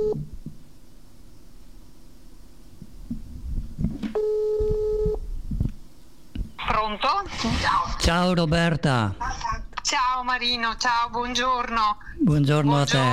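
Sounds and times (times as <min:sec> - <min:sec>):
telephone ringing tone after dialling a number: 0:00.0 - 0:00.2, 0:04.2 - 0:05.2
speech: 0:06.9 - 0:13.1.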